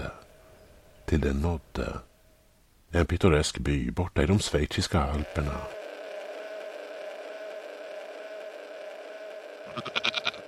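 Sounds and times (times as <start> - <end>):
speech: 1.1 - 2.1, 2.9 - 5.8, 9.8 - 10.0
steady droning background: 4.7 - 10.4
goat bleating in a Swiss Alps village: 9.7 - 10.4.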